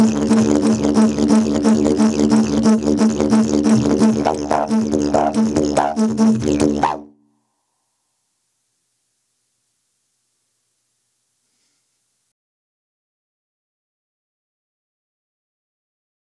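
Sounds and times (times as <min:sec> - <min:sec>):
didgeridoo solo: 0:00.0 - 0:07.2.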